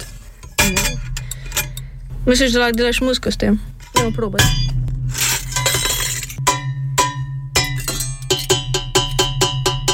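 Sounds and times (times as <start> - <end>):
stainless steel kitchen pot clanking and ringing: 0.4 - 1.8, 3.8 - 9.9
speech: 2.3 - 4.8.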